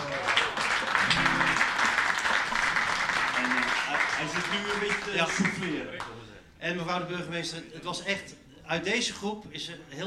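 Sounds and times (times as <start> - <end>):
audience applause: 0.0 - 6.0
speech: 4.2 - 10.0.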